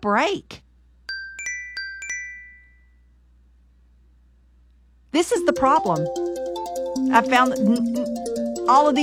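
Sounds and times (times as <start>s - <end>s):
speech: 0.0s - 0.6s, 5.1s - 6.5s, 7.1s - 9.0s
soft gentle alarm ringtone chiming: 1.1s - 3.0s, 5.4s - 9.0s.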